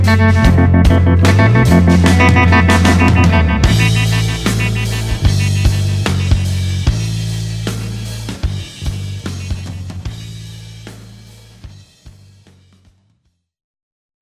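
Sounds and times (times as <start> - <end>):
tremolo playing: 0.0 - 11.1.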